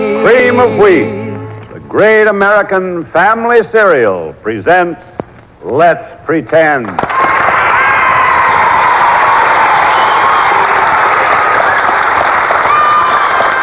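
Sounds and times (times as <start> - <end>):
speech: 0.2 - 1.2, 1.9 - 7.2
studio audience clapping excitedly: 6.8 - 13.6.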